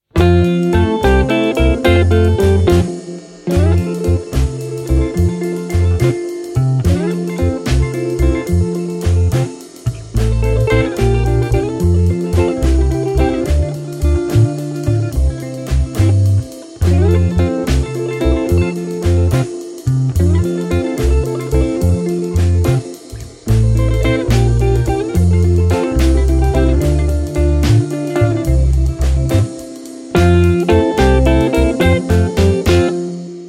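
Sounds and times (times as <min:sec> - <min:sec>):
instrumental music: 0:00.0 - 0:33.4.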